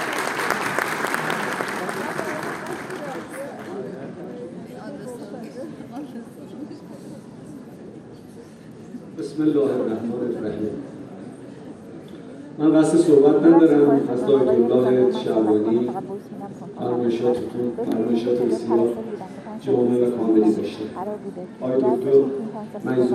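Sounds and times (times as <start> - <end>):
audience applause: 0.0 - 4.0
speech: 9.4 - 10.9, 12.6 - 23.1.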